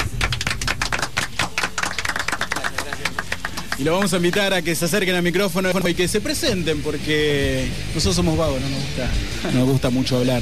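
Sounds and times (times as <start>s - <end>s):
audience applause welcoming guests: 0.0s - 4.7s
speech: 3.8s - 10.3s.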